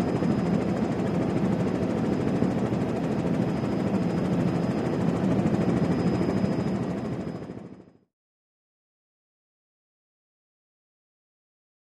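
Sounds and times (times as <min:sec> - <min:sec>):
Jet Ranger helicopter hovering, in-flight interior: 0:00.0 - 0:08.0.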